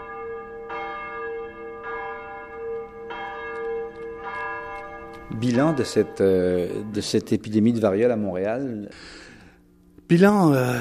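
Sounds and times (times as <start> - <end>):
church bell tolling a death knell in Montreal: 0.0 - 8.6
speech: 5.3 - 9.2, 10.1 - 10.7.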